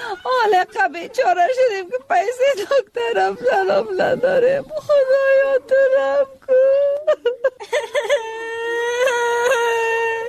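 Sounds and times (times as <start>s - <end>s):
speech: 0.1s - 8.3s
child crying: 3.0s - 10.2s.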